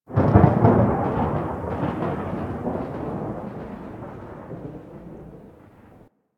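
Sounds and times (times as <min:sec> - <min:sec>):
random thunder in Cephalon Suda hub: 0:00.0 - 0:06.1.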